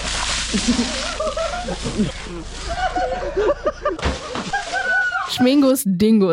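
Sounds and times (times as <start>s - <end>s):
water splashing during the Polish Easter Monday Śmigus-dyngus custom: 0.0s - 5.4s
speech: 0.5s - 4.6s, 5.3s - 6.3s
people laughing: 0.5s - 5.4s
people shouting: 4.7s - 5.4s.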